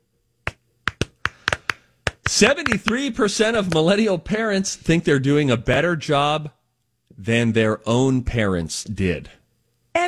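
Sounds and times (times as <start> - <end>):
handclaps: 0.4 - 3.9
speech: 2.4 - 6.6, 7.2 - 9.4.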